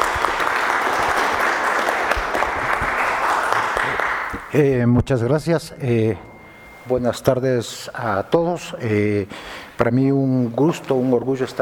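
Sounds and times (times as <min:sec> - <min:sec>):
audience applause: 0:00.0 - 0:04.5
speech: 0:04.5 - 0:11.6.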